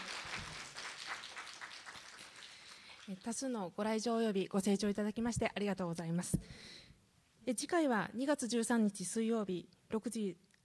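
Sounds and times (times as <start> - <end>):
audience applause: 0.0 - 3.2
speech: 3.1 - 6.8, 7.5 - 10.5.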